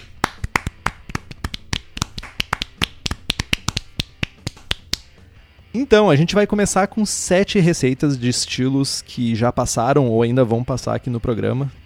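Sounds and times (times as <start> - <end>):
hands clapping: 0.0 - 5.2
speech: 5.8 - 11.8.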